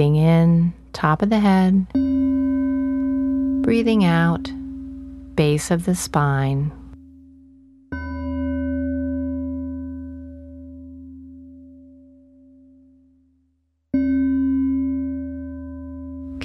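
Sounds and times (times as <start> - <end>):
speech: 1.0 - 2.1, 3.7 - 4.6, 5.4 - 6.8
meditation chime: 1.9 - 5.7, 6.3 - 13.3, 14.0 - 16.4.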